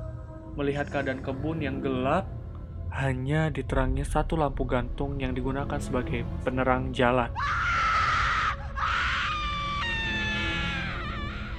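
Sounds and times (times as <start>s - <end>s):
rumbling noise: 0.0s - 7.3s
speech: 0.6s - 7.8s
child crying: 7.4s - 11.5s.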